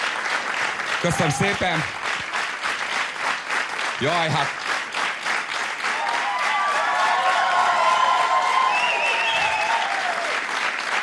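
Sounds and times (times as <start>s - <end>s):
audience applause: 0.0s - 11.0s
speech: 1.0s - 2.1s, 4.0s - 4.6s
faint cheering and whistles: 6.0s - 10.3s.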